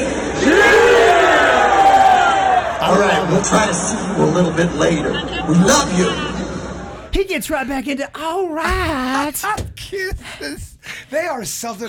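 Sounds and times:
crowd giving a loud sustained group cheer: 0.0s - 7.1s
speech: 2.9s - 6.3s, 7.2s - 11.8s.

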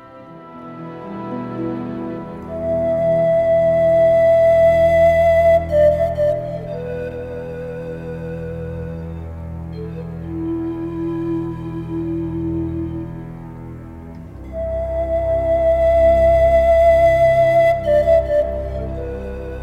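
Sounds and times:
breathy pan flute slow expressive melody in film score: 0.0s - 19.6s
warm sustained orchestral pads: 0.0s - 19.6s.

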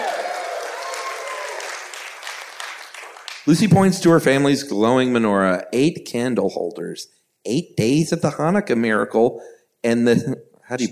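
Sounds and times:
audience clapping: 0.0s - 3.9s
speech: 3.5s - 10.8s.

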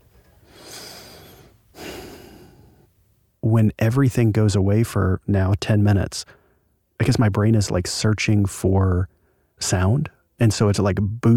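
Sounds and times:
loud breathing through the nose: 0.4s - 2.9s
speech: 3.5s - 6.4s, 7.0s - 11.3s.

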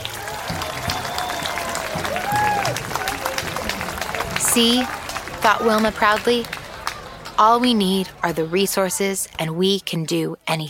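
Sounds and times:
crowd cheering and celebrating: 0.0s - 9.2s
speech: 4.6s - 6.6s, 7.4s - 10.6s.

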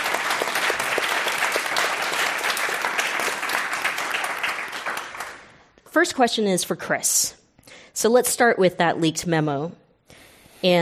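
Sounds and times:
audience applause for panelists: 0.0s - 5.5s
speech: 6.0s - 7.4s, 8.0s - 9.8s, 10.6s - 10.8s.

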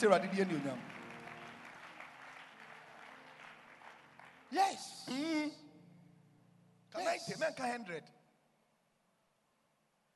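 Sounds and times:
speech: 0.0s - 1.0s, 4.5s - 5.6s, 6.9s - 8.2s
audience clapping hands: 0.0s - 5.1s.

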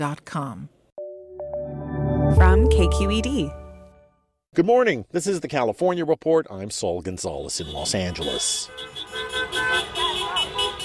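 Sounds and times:
speech: 0.0s - 0.8s, 2.3s - 3.6s, 4.5s - 10.0s
street noise: 7.1s - 10.8s
car horns honking at a street celebration in downtown Los Angeles: 7.4s - 10.8s.

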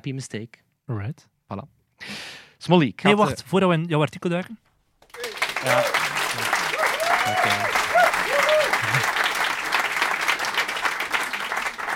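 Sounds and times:
speech: 0.0s - 4.7s, 5.6s - 6.1s
audience applause: 5.1s - 11.9s.

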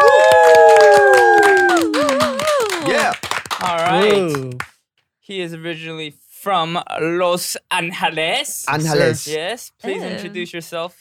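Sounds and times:
drawn-out whooping cheer: 0.0s - 3.1s
audience clapping welcoming a guest: 0.0s - 4.8s
speech: 5.3s - 10.9s.

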